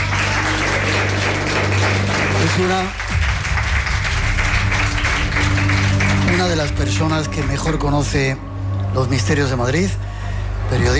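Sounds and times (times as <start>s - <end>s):
audience applause: 0.0s - 7.8s
speech: 2.6s - 3.1s, 6.4s - 10.1s, 10.7s - 10.9s.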